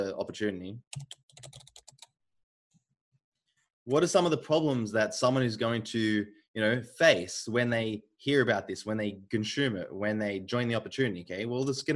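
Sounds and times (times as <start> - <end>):
speech: 0.1 - 1.6, 3.9 - 11.9
computer keyboard typing a note: 0.9 - 2.2.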